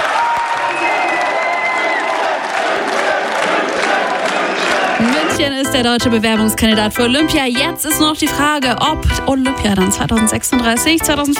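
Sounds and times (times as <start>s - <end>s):
crowd applauding at Munich's Old Town Hall: 0.0s - 5.9s
speech: 5.0s - 11.3s.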